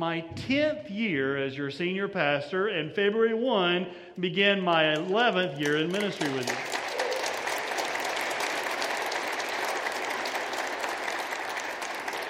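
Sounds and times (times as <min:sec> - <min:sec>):
speech: 0:00.0 - 0:06.8
audience applause: 0:05.5 - 0:12.2.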